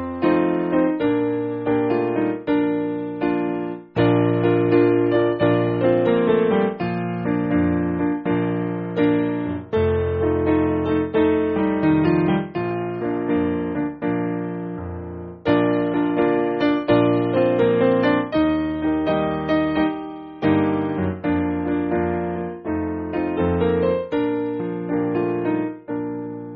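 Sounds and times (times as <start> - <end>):
simple piano piece: 0.0 - 26.5.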